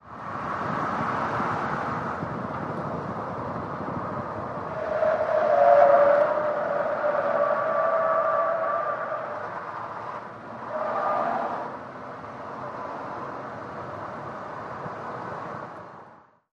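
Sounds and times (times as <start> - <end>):
SUV truck accelerating around corners: 0.0 - 16.2.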